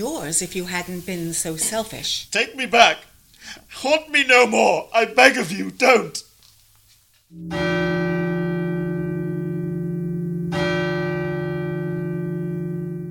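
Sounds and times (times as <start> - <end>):
speech: 0.0 - 6.3, 7.3 - 7.7
steeple clock bell striking the hour: 7.4 - 13.1.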